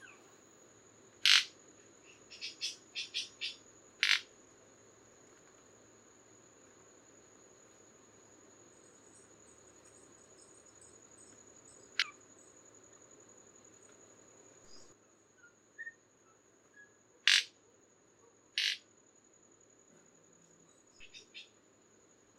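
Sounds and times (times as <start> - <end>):
Manacus candei: 1.2 - 1.5, 2.1 - 4.3, 12.0 - 12.2, 17.3 - 17.5, 18.6 - 18.8.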